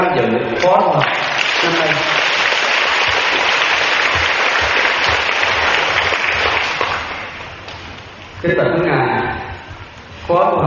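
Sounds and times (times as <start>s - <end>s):
speech: 0.2s - 2.3s, 8.4s - 9.0s
large crowd applauding participants of a Buddhist teaching retreat: 0.6s - 7.8s.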